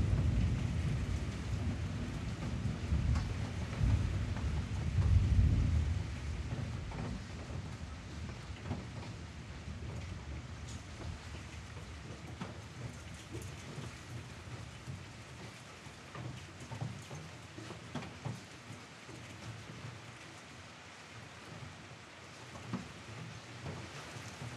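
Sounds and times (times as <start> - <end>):
thunder: 0.0 - 11.9.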